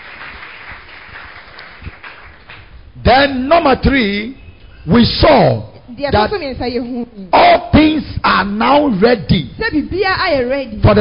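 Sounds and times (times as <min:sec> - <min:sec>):
congregation clapping hands during a church service: 0:00.0 - 0:03.0
speech: 0:03.1 - 0:11.0.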